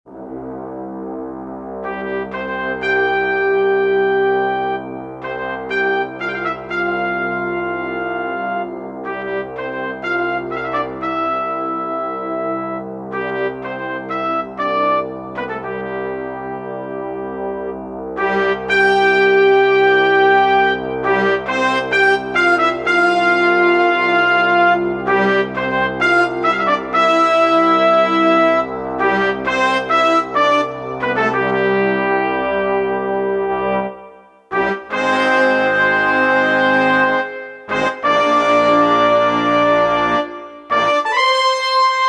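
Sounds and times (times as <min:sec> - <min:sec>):
brass instruments: 0:00.1 - 0:42.0.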